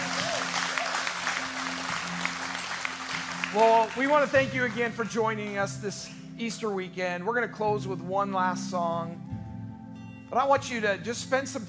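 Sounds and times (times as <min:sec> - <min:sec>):
crowd applause: 0:00.0 - 0:05.6
speech: 0:03.5 - 0:09.2, 0:10.3 - 0:11.6.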